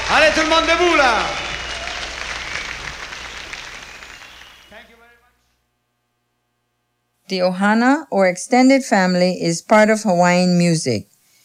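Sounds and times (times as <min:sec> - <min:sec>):
audience applause: 0:00.0 - 0:05.2
speech: 0:00.3 - 0:01.5, 0:07.3 - 0:11.1.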